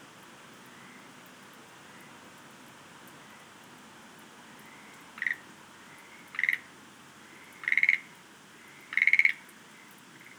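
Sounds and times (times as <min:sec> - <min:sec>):
Schlegel's green tree frog rattling croaks: 0:05.2 - 0:05.4, 0:06.3 - 0:06.6, 0:07.6 - 0:08.1, 0:08.9 - 0:09.4.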